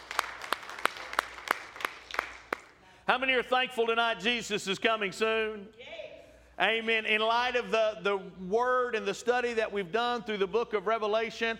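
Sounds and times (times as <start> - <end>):
audience clapping: 0.0 - 2.8
speech: 3.1 - 5.9, 6.6 - 11.5.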